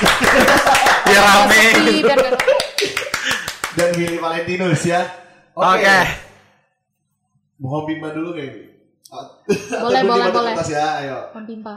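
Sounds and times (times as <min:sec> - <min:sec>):
hand claps: 0:00.0 - 0:04.4
people talking and laughing: 0:00.0 - 0:06.3, 0:07.7 - 0:11.2
speech: 0:01.1 - 0:03.0, 0:03.8 - 0:06.2, 0:07.6 - 0:11.7.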